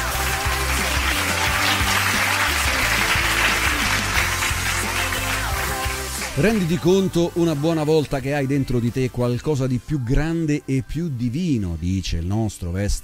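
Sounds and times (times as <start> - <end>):
applause: 0.0 - 6.8
bass line music: 0.0 - 13.0
speech: 6.4 - 13.0.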